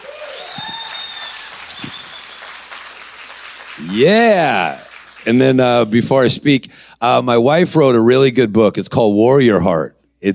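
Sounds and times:
high whistles: 0.0 - 4.0
audience clapping: 0.0 - 6.0
speech: 3.8 - 10.3.

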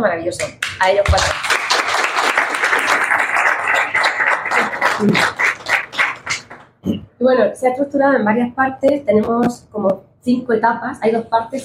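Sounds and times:
speech: 0.0 - 1.6, 5.0 - 5.4, 6.8 - 11.6
audience applause: 1.1 - 6.7.

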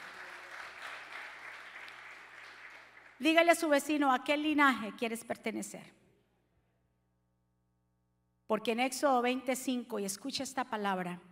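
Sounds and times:
audience applause: 0.0 - 3.2
speech: 3.2 - 6.0, 8.5 - 11.3.

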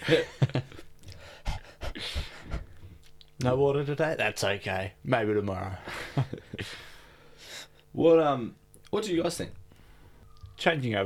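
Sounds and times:
speech: 0.0 - 0.3, 3.4 - 6.4, 8.0 - 9.6, 10.6 - 11.0
breathy panting: 1.0 - 3.0.

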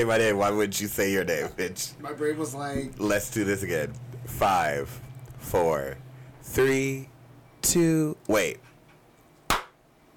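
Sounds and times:
speech: 0.0 - 8.7
hand clap as editing marker: 9.5 - 9.8.

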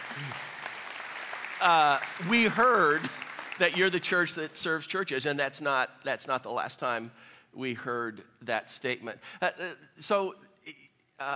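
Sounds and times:
applause: 0.0 - 4.8
speech: 0.2 - 0.4, 1.6 - 11.3.

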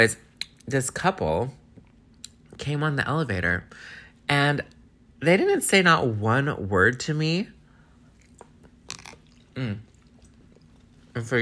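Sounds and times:
speech: 0.0 - 1.6, 2.6 - 7.6, 9.6 - 9.9, 11.2 - 11.3
person eating and chewing food: 8.1 - 11.1.

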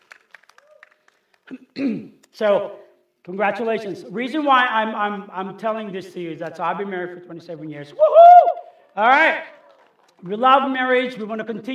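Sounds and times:
scattered audience claps: 0.0 - 1.8, 8.7 - 10.8
speech: 1.5 - 8.2, 9.0 - 9.6, 10.2 - 11.7.

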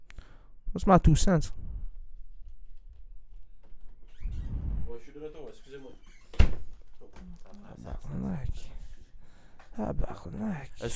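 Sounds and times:
faint noise: 0.0 - 10.9
speech: 0.7 - 1.6, 7.1 - 8.7, 9.8 - 10.9
door slammed shut by the wind: 6.3 - 6.7.

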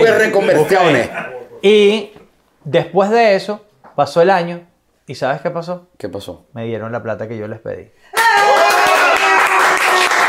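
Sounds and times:
speech: 0.1 - 8.5
live audience applauding loudly: 8.2 - 10.2.

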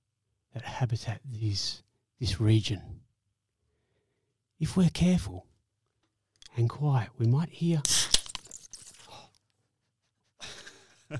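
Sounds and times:
speech: 0.6 - 3.0, 4.6 - 5.5, 6.6 - 8.1
beer can being cracked open: 7.8 - 9.0.

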